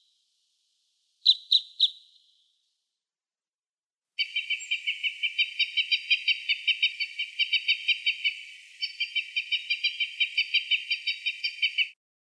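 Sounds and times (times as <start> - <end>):
red crossbill calling: 1.2 - 2.0, 4.2 - 12.0.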